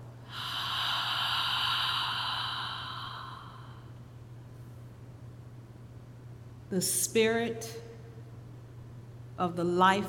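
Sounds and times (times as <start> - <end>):
breathy exhalation during a guided breathing exercise: 0.2 - 4.0
speech: 6.7 - 7.9, 9.4 - 10.0.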